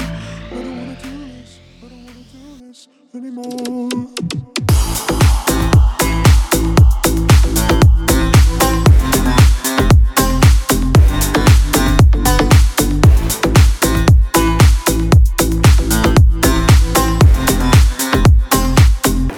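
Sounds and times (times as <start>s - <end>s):
drum beat at 115 bpm: 4.2s - 19.3s.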